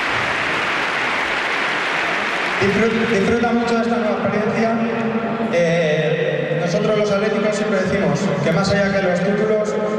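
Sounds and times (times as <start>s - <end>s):
huge stadium crowd applauding: 0.0s - 4.9s
speech: 2.6s - 9.9s.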